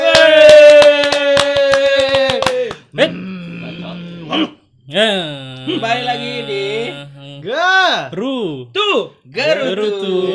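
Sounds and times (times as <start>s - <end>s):
hand clapping: 0.0s - 2.9s
speech: 4.9s - 10.3s.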